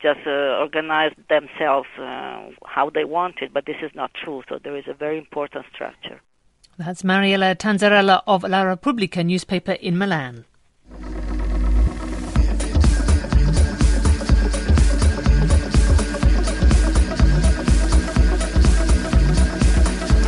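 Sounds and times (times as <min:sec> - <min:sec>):
speech: 0:00.0 - 0:11.0
electronic dance music with pounding kick drum and synth layers: 0:10.9 - 0:20.2.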